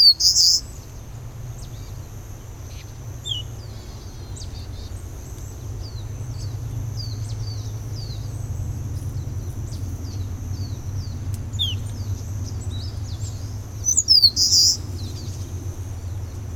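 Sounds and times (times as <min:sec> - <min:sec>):
Eastern crowned warbler Phylloscopus coronatus: 0:00.0 - 0:16.5.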